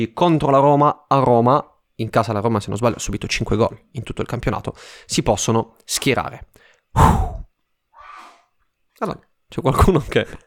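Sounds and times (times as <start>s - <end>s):
speech: 0.0s - 7.4s, 9.0s - 10.4s
breathy exhale: 6.6s - 8.5s
person sneezing from another room: 7.0s - 7.5s.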